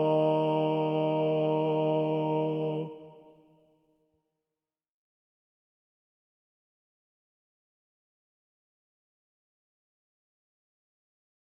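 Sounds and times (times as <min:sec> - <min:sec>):
SATB choir with predominant bass part: 0:00.0 - 0:03.4.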